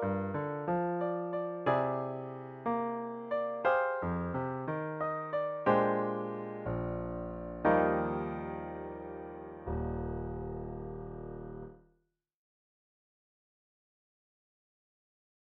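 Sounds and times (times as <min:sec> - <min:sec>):
solo piano: 0:00.0 - 0:11.8.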